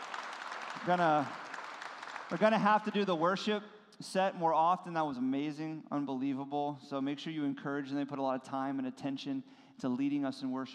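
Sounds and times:
audience applause for the band: 0.0s - 3.3s
speech: 0.8s - 1.5s, 2.3s - 10.7s.

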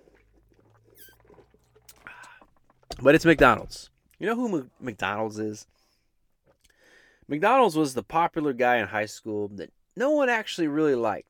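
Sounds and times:
slurping sip of Coke: 0.0s - 3.8s
straw squeaking in a plastic lid: 0.6s - 3.8s
speech: 3.0s - 5.8s, 7.3s - 11.2s.

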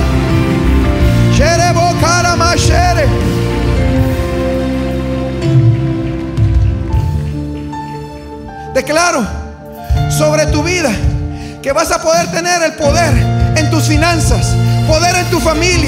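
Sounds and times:
audience applauding: 0.0s - 9.6s
speech: 8.8s - 9.4s, 10.1s - 15.8s.

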